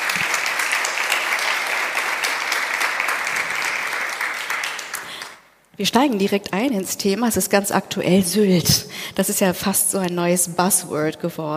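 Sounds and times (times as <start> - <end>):
audience applause: 0.0 - 5.4
speech: 5.8 - 11.5.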